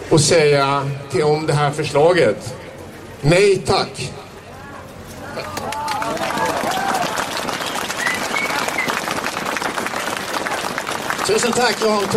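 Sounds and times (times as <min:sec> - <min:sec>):
speech: 0:00.1 - 0:02.6, 0:03.2 - 0:04.2, 0:11.3 - 0:12.1
audience applause: 0:05.4 - 0:12.1
cheers: 0:05.4 - 0:12.1.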